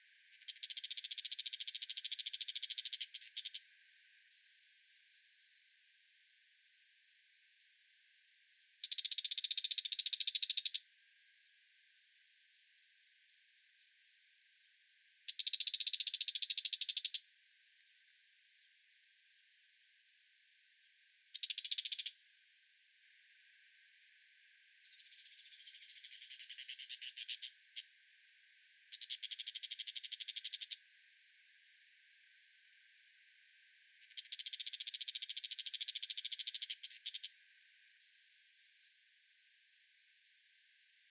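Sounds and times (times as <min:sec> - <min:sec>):
brown shrike: 0:00.3 - 0:03.7, 0:08.8 - 0:10.8, 0:15.3 - 0:18.0, 0:21.3 - 0:22.2, 0:24.8 - 0:27.9, 0:28.9 - 0:30.8, 0:34.0 - 0:37.4.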